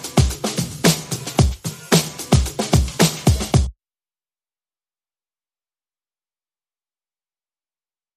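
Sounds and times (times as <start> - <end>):
congas: 0.0 - 3.7
drums: 0.0 - 3.7.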